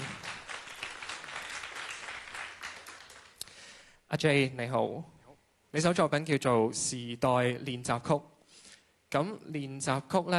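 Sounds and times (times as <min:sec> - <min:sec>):
audience applause: 0:00.0 - 0:03.4
speech: 0:04.1 - 0:08.3, 0:09.1 - 0:10.3.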